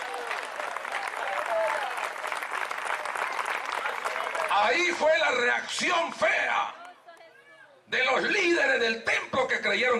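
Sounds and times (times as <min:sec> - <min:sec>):
audience applauding: 0:00.0 - 0:05.1
speech: 0:04.6 - 0:06.8, 0:07.9 - 0:09.9.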